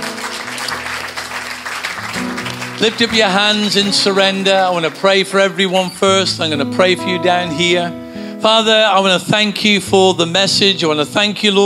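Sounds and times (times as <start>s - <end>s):
audience clapping: 0.0s - 5.8s
speech: 2.8s - 11.6s.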